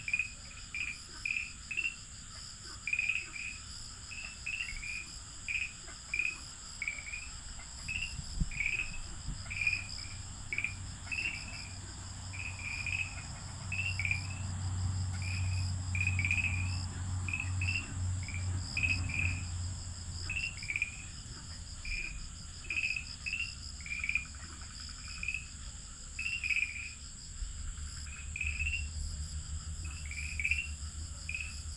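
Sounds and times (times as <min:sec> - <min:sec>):
ornate treefrog calling: 0:00.0 - 0:25.5, 0:26.2 - 0:27.0, 0:28.0 - 0:29.0, 0:29.8 - 0:31.6.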